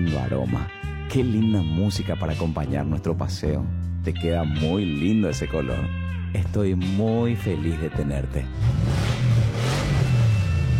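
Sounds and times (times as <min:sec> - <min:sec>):
speech: 0:00.0 - 0:09.0
new zero-kilometre car engine revving: 0:08.5 - 0:10.7.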